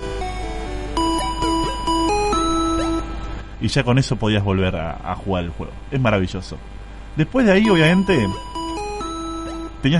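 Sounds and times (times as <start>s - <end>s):
video game healing jingle: 0.0s - 3.4s, 7.4s - 9.9s
speech: 3.6s - 8.6s, 9.8s - 9.9s.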